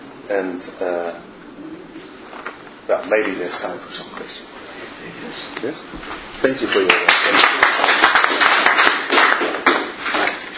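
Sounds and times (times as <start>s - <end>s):
speech: 0.3s - 1.8s, 2.9s - 8.8s
audience applause: 6.7s - 10.0s.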